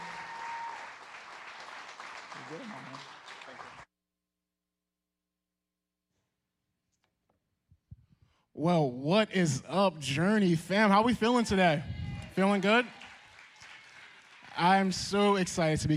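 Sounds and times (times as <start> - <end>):
audience applause welcoming a speaker at a faith gathering: 0.0 - 3.9, 12.1 - 15.9
speech: 2.5 - 3.9, 8.6 - 13.0, 14.6 - 15.9.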